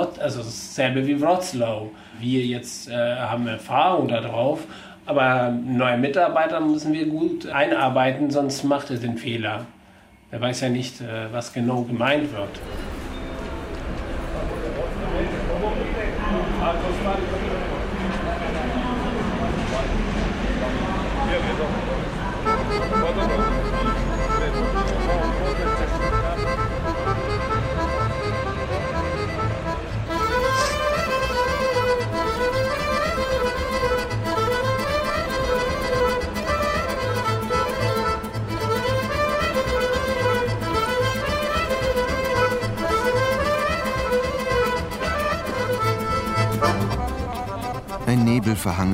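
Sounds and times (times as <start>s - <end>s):
speech: 0.2s - 13.0s, 48.1s - 48.9s
traffic noise at a bus station: 12.3s - 48.9s
bus engine rumble from a bus bound for Zagreb: 12.5s - 32.9s
people's voices at a bus station: 13.4s - 26.6s, 46.6s - 48.9s.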